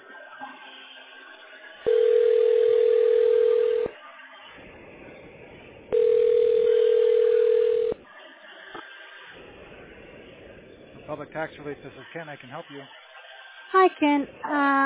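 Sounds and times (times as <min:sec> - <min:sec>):
low hiss: 0:00.0 - 0:14.8
phone ringback tones: 0:01.9 - 0:04.0, 0:05.9 - 0:08.0
speech: 0:11.2 - 0:13.0, 0:13.8 - 0:14.8.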